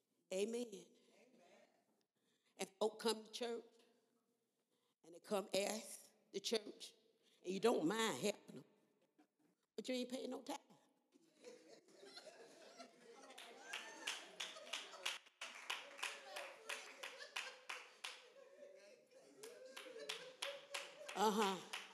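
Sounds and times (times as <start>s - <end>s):
speech: 0.3s - 1.0s, 2.8s - 3.7s, 5.1s - 8.7s, 9.8s - 10.6s, 21.2s - 21.7s
laughter: 11.2s - 21.9s
hand clapping: 13.3s - 18.4s, 19.4s - 21.9s.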